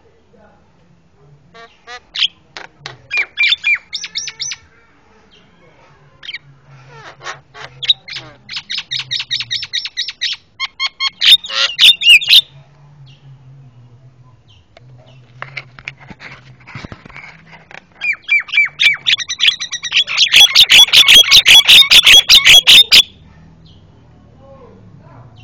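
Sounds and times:
Javan myna calling: 0:03.1 - 0:04.8, 0:06.2 - 0:12.6, 0:18.0 - 0:23.2.

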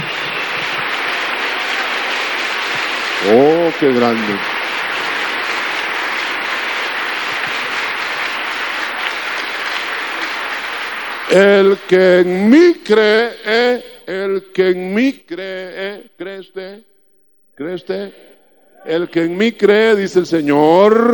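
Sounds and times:
audience applause: 0:00.0 - 0:13.1
speech: 0:03.2 - 0:04.5, 0:11.3 - 0:16.9, 0:17.6 - 0:21.1.

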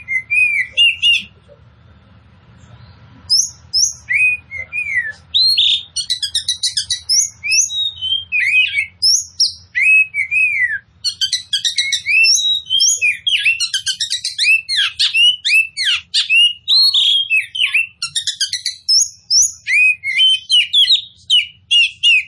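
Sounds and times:
oriental magpie-robin singing: 0:00.0 - 0:01.6, 0:02.6 - 0:22.2.

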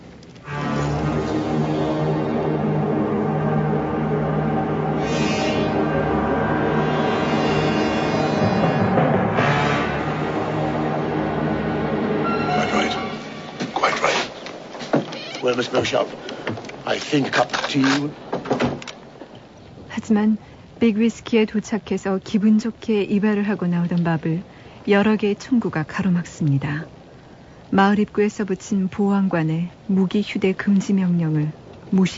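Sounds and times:
moving train: 0:00.0 - 0:18.3
speech: 0:15.6 - 0:16.3, 0:17.0 - 0:18.2, 0:20.1 - 0:27.0, 0:27.7 - 0:32.1.

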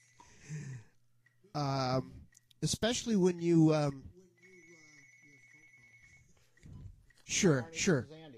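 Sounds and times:
speech: 0:01.5 - 0:04.1, 0:07.3 - 0:08.3
telephone ringing with a high electronic tone: 0:04.2 - 0:07.6.

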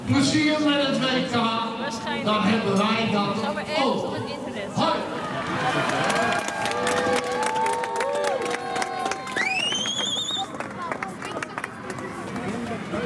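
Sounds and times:
speech: 0:00.1 - 0:06.3
crowd cheering off the national football team: 0:05.1 - 0:09.7
scattered claps: 0:05.8 - 0:13.0
whistles: 0:09.3 - 0:10.5.

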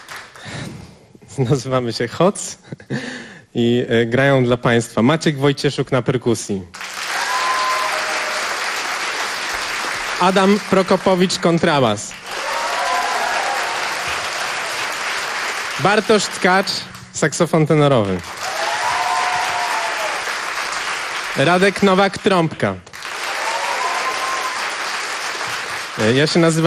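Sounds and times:
speech: 0:01.4 - 0:06.8, 0:10.2 - 0:12.2, 0:15.8 - 0:18.4, 0:21.4 - 0:22.9, 0:26.0 - 0:26.6
audience applause: 0:06.8 - 0:17.0, 0:18.1 - 0:22.3, 0:22.9 - 0:26.6.

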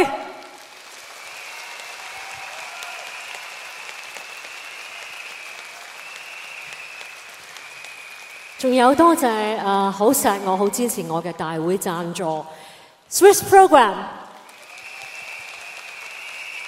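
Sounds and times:
audience applause at a concert: 0:00.0 - 0:08.7, 0:14.2 - 0:16.6
speech: 0:08.6 - 0:14.2.

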